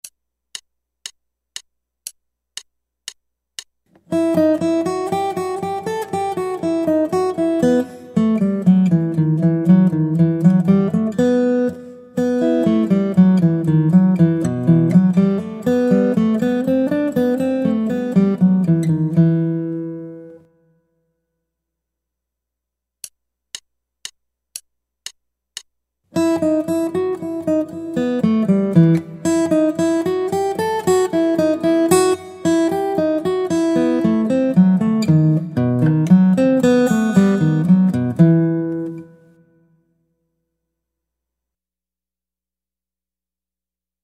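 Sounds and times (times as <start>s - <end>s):
guitar: 3.9s - 21.0s, 26.1s - 40.0s.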